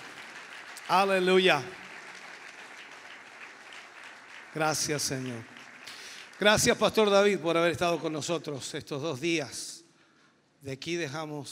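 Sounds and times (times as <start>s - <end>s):
audience applause: 0.0s - 7.4s
speech: 0.9s - 1.8s, 4.5s - 5.5s, 6.4s - 9.7s, 10.6s - 11.5s.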